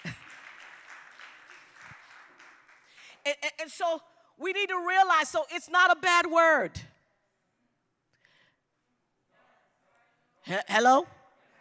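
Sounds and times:
audience applause: 0.0s - 3.3s
speech: 3.2s - 6.9s, 10.5s - 11.2s.

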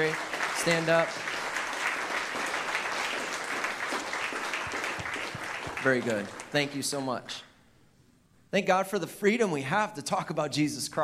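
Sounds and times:
speech: 0.0s - 1.3s, 5.8s - 7.5s, 8.5s - 11.0s
audience applause for military veterans: 0.0s - 7.2s.

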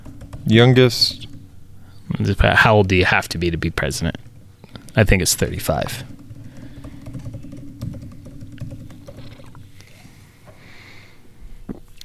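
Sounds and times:
fast typing on a computer keyboard: 0.0s - 1.5s, 3.4s - 9.8s
speech: 0.5s - 1.3s, 2.1s - 4.3s, 5.0s - 6.2s.

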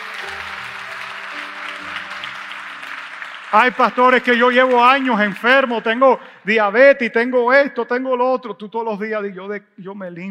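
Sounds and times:
loud applause from audience: 0.0s - 6.4s
speech: 3.5s - 10.2s.

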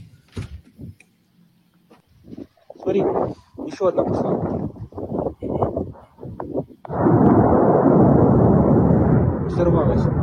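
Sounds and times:
speech: 2.9s - 4.7s
missile explosion: 6.9s - 10.2s.

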